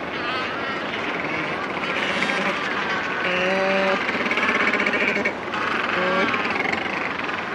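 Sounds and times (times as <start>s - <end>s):
macaroni penguin braying call: 0.1s - 7.4s.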